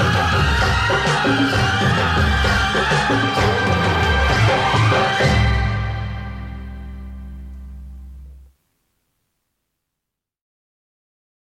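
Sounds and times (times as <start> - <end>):
duet singing: 0.0 - 8.5.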